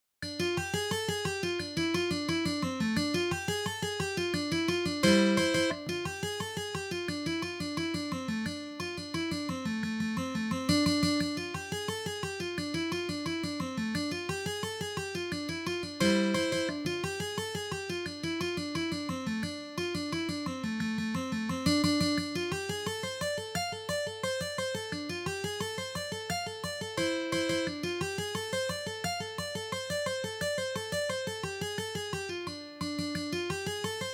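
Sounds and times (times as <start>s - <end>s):
mandolin: 0.4s - 34.1s.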